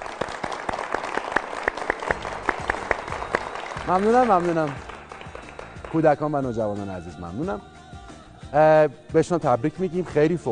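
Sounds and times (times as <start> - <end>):
rhythmic clapping applauding the national volleyball team: 0.0 - 7.9
speech: 3.9 - 4.9, 5.9 - 7.7, 8.5 - 10.5.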